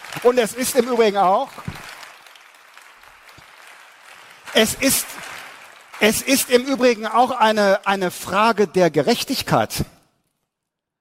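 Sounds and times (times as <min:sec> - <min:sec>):
audience applause: 0:00.0 - 0:07.9
speech: 0:00.2 - 0:01.7, 0:04.6 - 0:05.3, 0:06.0 - 0:09.9.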